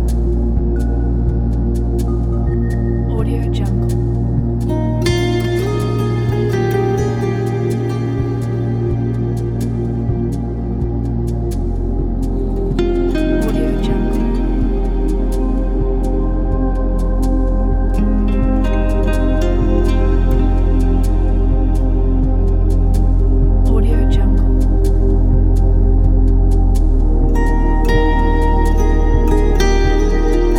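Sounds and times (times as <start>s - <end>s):
ambient atmosphere: 0.0s - 30.5s.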